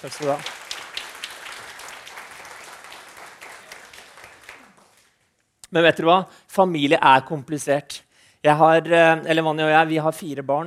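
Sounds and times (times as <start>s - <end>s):
speech: 0.0s - 0.6s, 5.7s - 10.6s
audience applause: 0.0s - 5.2s.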